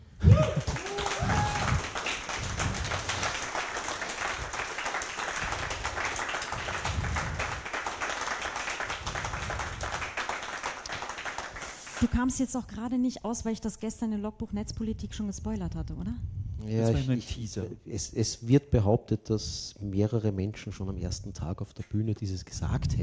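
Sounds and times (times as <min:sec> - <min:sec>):
frenetic applause: 0:00.2 - 0:12.1
speech: 0:12.0 - 0:23.0.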